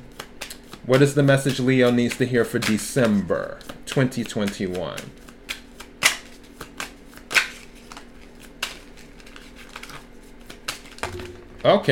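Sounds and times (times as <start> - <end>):
tarot cards shuffling: 0.1 - 11.3
speech: 0.8 - 5.2, 11.6 - 11.9.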